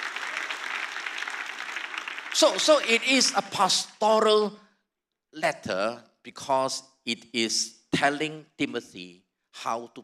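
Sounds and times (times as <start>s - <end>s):
audience clapping: 0.0s - 3.5s
speech: 2.4s - 4.6s, 5.3s - 10.0s.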